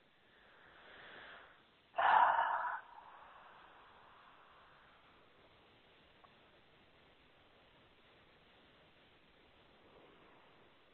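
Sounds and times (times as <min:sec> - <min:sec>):
group breathing in deeply during a spiritual healing session: 0:00.3 - 0:05.2.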